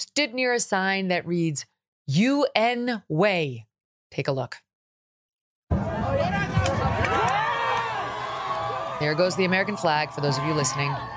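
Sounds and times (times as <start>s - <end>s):
speech: 0.0s - 4.6s, 9.0s - 11.1s
crowd cheering: 5.7s - 11.1s.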